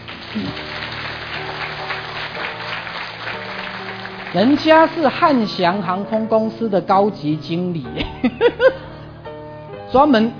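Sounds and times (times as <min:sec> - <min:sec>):
audience clapping: 0:00.0 - 0:05.5
speech: 0:00.4 - 0:00.7, 0:04.3 - 0:08.8, 0:09.9 - 0:10.3.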